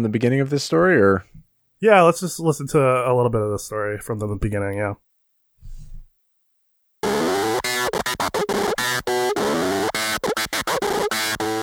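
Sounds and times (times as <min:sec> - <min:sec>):
speech: 0:00.0 - 0:05.0
turntable scratching with pitch and distortion pedals: 0:07.0 - 0:11.6.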